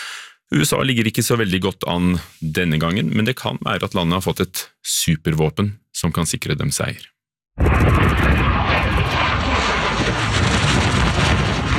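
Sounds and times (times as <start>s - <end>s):
speech: 0.5s - 8.8s
Russian MiG-29 fighter jet flying low over the ground in Wisconsin: 7.6s - 11.7s
wind rush: 7.6s - 11.7s.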